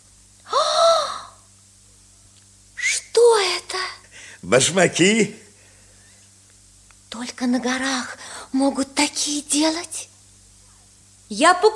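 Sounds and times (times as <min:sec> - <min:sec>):
woman gasping in amazement at a pair of shoes: 0:00.5 - 0:01.4
speech: 0:04.5 - 0:05.4, 0:07.5 - 0:10.1, 0:11.3 - 0:11.7.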